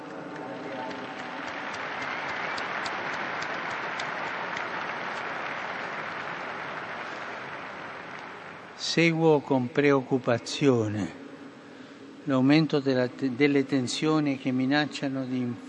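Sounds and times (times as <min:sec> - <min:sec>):
large crowd applauding the newly beatified: 0:00.0 - 0:09.2
speech: 0:08.9 - 0:11.2, 0:12.2 - 0:15.6.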